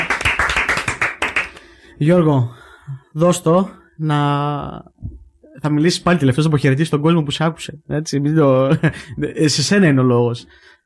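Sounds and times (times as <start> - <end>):
people clapping: 0.0 - 1.7
speech: 2.0 - 4.9, 5.6 - 10.8.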